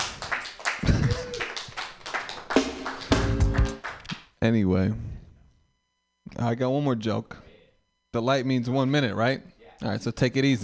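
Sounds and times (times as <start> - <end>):
crowd applauding: 0.0 - 4.2
speech: 4.4 - 5.1, 6.4 - 7.4, 8.1 - 10.6.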